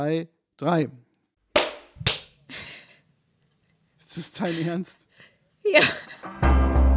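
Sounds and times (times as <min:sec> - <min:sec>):
speech: 0:00.0 - 0:01.0, 0:04.2 - 0:05.0, 0:05.6 - 0:06.8
hand clap to sync recordings: 0:01.6 - 0:02.4
laughter: 0:05.7 - 0:06.3.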